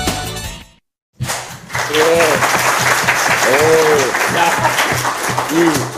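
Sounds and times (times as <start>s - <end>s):
loud applause: 1.4s - 5.9s.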